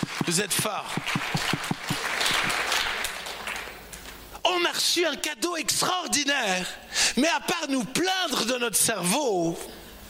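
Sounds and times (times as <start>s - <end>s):
audience applause: 0.0s - 4.1s
speech: 0.3s - 1.6s, 4.5s - 9.8s.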